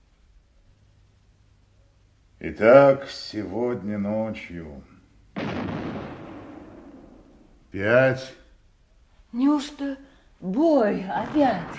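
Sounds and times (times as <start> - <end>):
speech: 2.4 - 4.9, 7.7 - 8.4, 9.3 - 11.7
six-inch artillery battery firing a salute: 5.4 - 7.6, 11.2 - 11.7.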